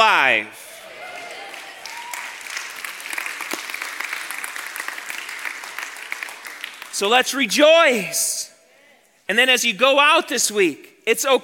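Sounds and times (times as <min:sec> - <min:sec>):
speech: 0:00.3 - 0:00.6, 0:07.0 - 0:08.5, 0:09.3 - 0:11.4
audience cheering: 0:00.8 - 0:05.0
audience clapping: 0:00.9 - 0:07.4.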